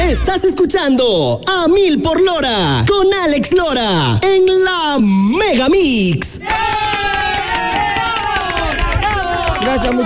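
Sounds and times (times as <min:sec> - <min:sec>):
speech: 0:00.1 - 0:07.2, 0:09.6 - 0:10.0
audience applause: 0:06.4 - 0:10.0.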